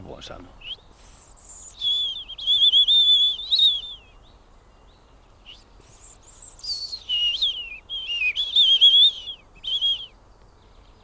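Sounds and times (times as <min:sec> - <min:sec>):
speech: 0:00.1 - 0:00.8
person whistling an imitation of European robin song: 0:00.6 - 0:04.2, 0:05.4 - 0:10.1.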